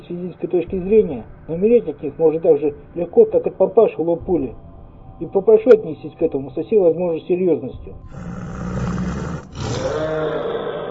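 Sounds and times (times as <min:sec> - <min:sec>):
speech: 0:00.1 - 0:04.6, 0:05.2 - 0:08.8
growling of approaching monsters: 0:08.1 - 0:10.8.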